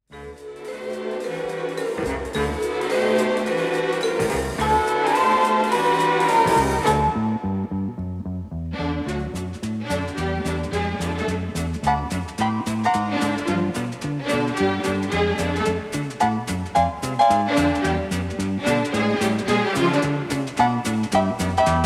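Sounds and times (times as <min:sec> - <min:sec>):
orchestra: 0:00.1 - 0:07.8, 0:08.7 - 0:21.8.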